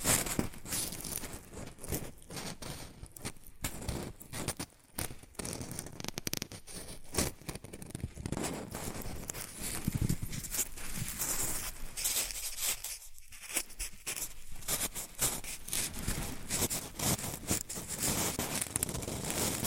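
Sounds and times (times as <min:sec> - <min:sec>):
shredded tissue and packing peanuts rustled and crinkled: 0:00.0 - 0:19.6.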